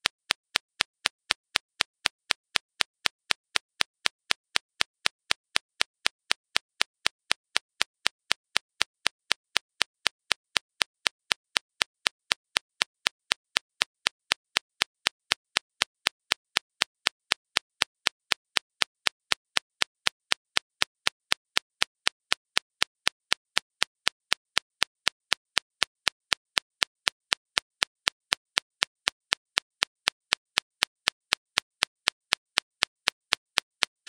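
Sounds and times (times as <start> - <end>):
clicks: 0.0 - 34.0.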